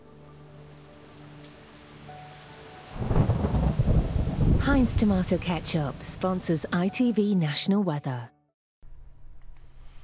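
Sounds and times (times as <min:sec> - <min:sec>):
heavy rain: 0:00.0 - 0:06.7
deep thunder rumbling: 0:02.9 - 0:06.5
speech: 0:04.7 - 0:08.4.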